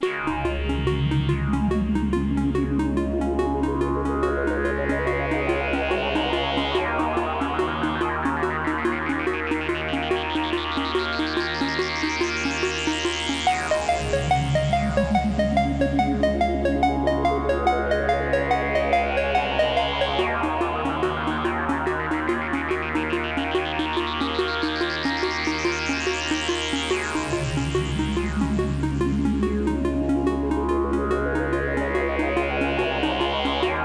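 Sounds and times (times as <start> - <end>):
ambient music: 0.0 - 33.8.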